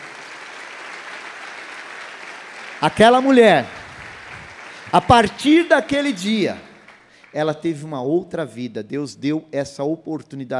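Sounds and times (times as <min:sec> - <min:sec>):
audience applause: 0:00.0 - 0:07.4
speech: 0:02.8 - 0:03.8, 0:04.9 - 0:06.7, 0:07.3 - 0:10.5.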